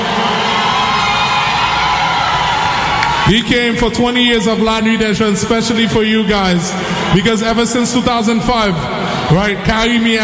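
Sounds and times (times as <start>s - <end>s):
crowd at a live music event applauding and cheering: 0.0s - 4.6s
speech: 3.3s - 10.2s.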